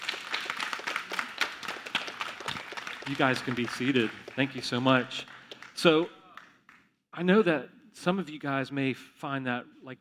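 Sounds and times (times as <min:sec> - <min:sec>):
crowd clapping: 0:00.0 - 0:06.9
speech: 0:03.1 - 0:06.2, 0:07.2 - 0:09.9.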